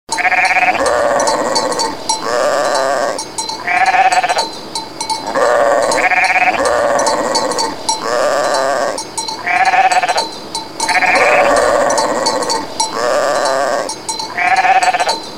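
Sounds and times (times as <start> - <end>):
goat quavering bleats: 0.1 - 4.5, 5.2 - 15.2.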